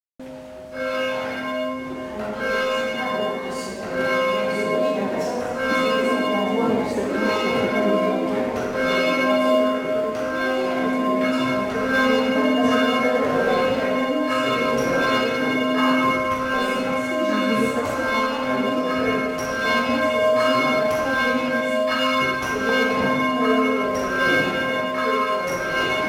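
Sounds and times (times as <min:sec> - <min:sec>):
bell ringing: 0:00.6 - 0:26.0.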